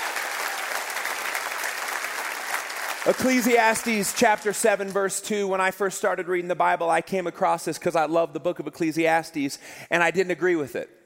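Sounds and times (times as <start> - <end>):
audience clapping: 0.0 - 5.1
speech: 3.0 - 11.0.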